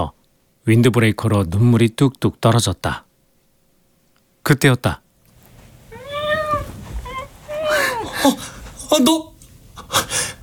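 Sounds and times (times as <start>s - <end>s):
speech: 0.0s - 3.0s, 4.4s - 5.0s, 8.2s - 9.3s
cat meowing: 5.9s - 8.4s.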